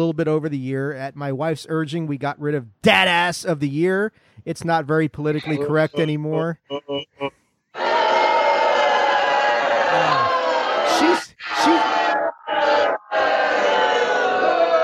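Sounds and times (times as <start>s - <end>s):
speech: 0.0s - 7.4s
live studio audience booing: 7.8s - 14.8s.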